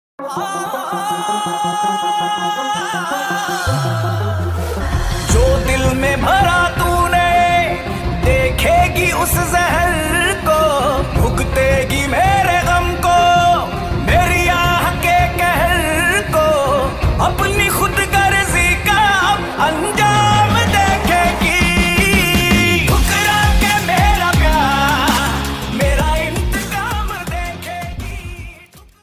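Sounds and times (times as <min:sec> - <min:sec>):
heart touching sad music: 0:00.2 - 0:28.3.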